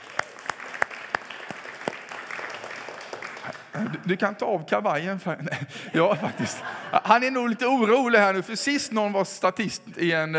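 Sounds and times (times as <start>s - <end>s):
audience applause: 0.0s - 4.1s
speech: 3.8s - 10.3s
laughter: 5.4s - 7.6s.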